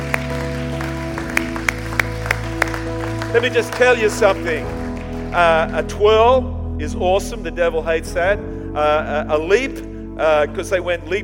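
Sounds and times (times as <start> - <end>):
audience hand clapping: 0.0 - 5.9
speech: 3.3 - 11.2.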